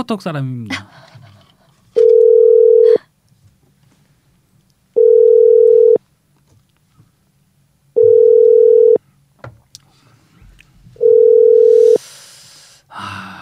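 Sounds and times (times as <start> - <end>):
telephone ringback tone, call unanswered: 2.0 - 3.0, 5.0 - 6.0, 8.0 - 9.0, 11.0 - 12.0.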